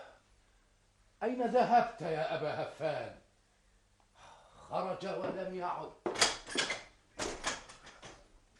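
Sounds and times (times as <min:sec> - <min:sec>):
speech: 0:01.2 - 0:03.2, 0:04.7 - 0:07.4
door being opened, radio drama sound effect: 0:06.1 - 0:08.2.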